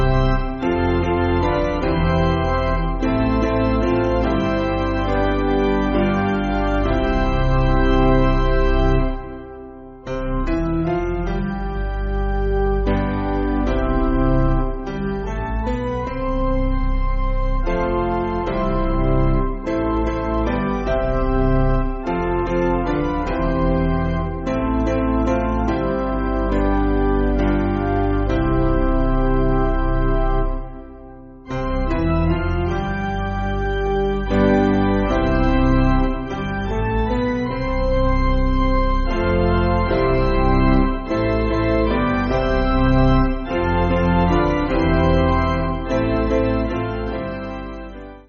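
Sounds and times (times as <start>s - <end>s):
piano playing hymns: 0.0s - 48.2s.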